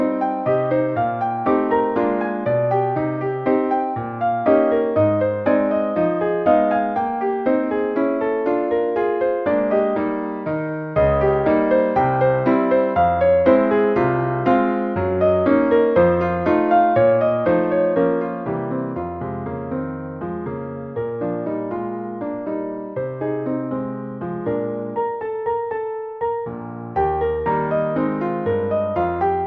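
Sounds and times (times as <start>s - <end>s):
ragtime-like piano solo in E flat major: 0.0s - 29.4s.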